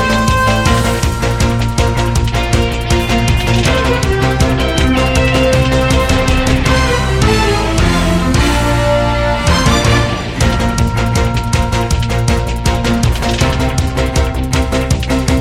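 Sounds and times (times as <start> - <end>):
opening theme music: 0.0 - 15.3.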